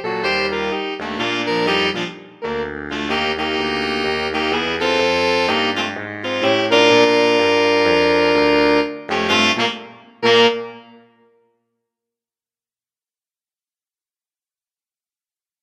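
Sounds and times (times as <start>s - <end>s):
saxophone quartet playing a carol: 0.0s - 11.1s.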